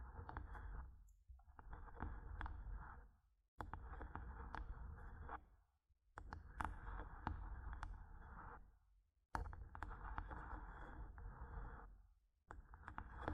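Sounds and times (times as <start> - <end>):
scratching and tapping on a microphone: 0.0 - 5.4, 6.2 - 8.6, 9.4 - 11.8, 12.5 - 13.3.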